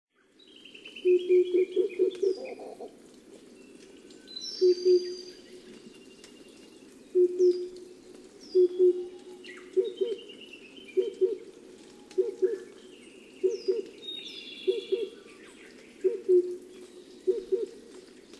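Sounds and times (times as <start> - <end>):
Oriental cuckoo deep hollow paired hoots in Hokkaido: 1.0 - 3.0, 4.6 - 5.3, 7.1 - 7.8, 8.5 - 10.3, 10.9 - 11.5, 12.1 - 12.8, 13.4 - 14.0, 14.6 - 15.2, 16.0 - 16.6, 17.2 - 17.8.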